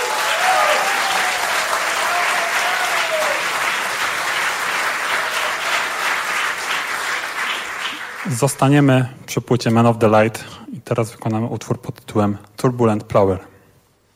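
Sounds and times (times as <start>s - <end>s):
concert audience applause for a musical duo: 0.0s - 8.6s
speech: 8.3s - 13.5s.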